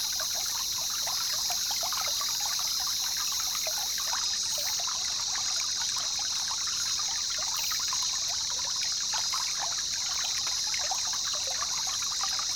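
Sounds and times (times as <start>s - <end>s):
calm river flowing in the jungle: 0.0s - 12.5s.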